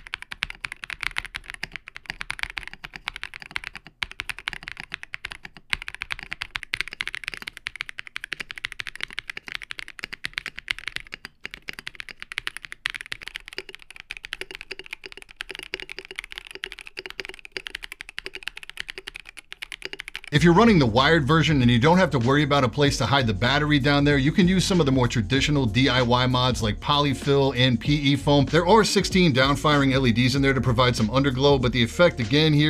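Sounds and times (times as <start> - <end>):
typing on Ikki68 Aurora R2 and KBD67 Lite mechanical keyboards: 0.0 - 32.6
speech: 20.4 - 32.6.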